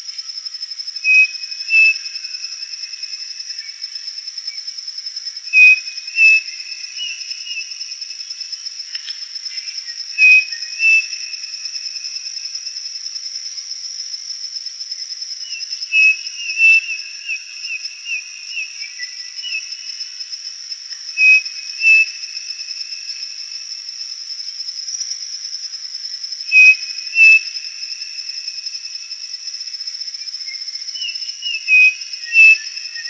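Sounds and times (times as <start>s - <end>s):
bird whistled call: 1.0s - 2.0s, 10.1s - 11.3s, 15.5s - 19.8s, 21.2s - 22.2s, 26.5s - 27.5s, 30.5s - 33.0s.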